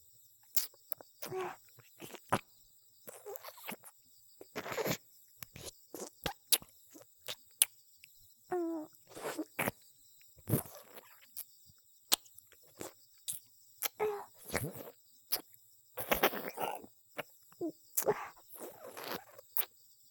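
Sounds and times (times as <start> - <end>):
erotic ear licking: 0.5 - 2.5, 3.1 - 7.7, 8.8 - 9.7, 10.5 - 11.5, 12.1 - 17.3, 17.9 - 19.7.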